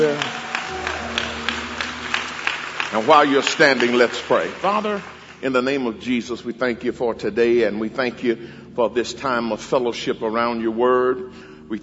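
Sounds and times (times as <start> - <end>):
audience hand clapping: 0.0 - 6.2
speech: 2.9 - 11.8.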